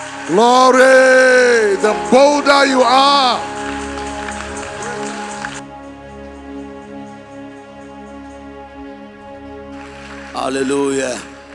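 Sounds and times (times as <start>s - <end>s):
audience clapping hands: 0.0s - 6.6s, 9.7s - 11.5s
speech: 0.3s - 3.6s, 10.5s - 11.3s.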